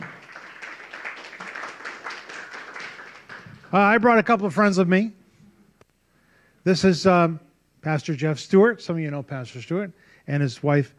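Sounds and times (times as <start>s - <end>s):
audience applause greeting guests: 0.0s - 3.9s
speech: 3.7s - 5.2s, 6.6s - 10.9s.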